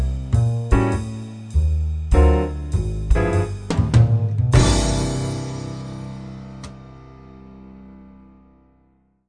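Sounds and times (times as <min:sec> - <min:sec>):
swing jazz walking bass: 0:00.0 - 0:05.6.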